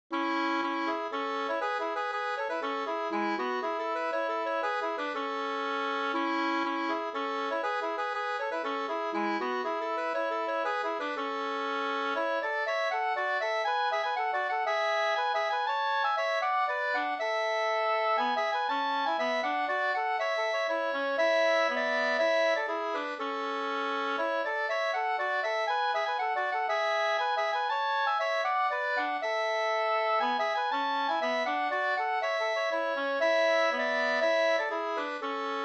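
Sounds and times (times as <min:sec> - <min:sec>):
polska springlek folk dance music: 0:00.2 - 0:35.6.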